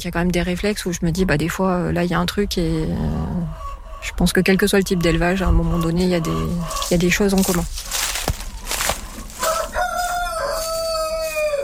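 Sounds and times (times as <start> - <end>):
speech: 0.0 - 8.0
Vercors grey chicken rooster crowing: 8.8 - 11.6.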